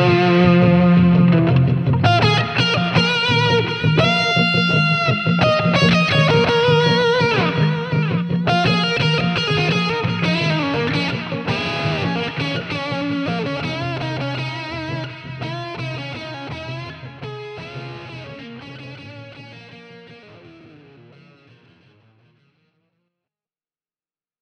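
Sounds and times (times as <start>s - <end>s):
custom guitars: 0.0s - 22.7s.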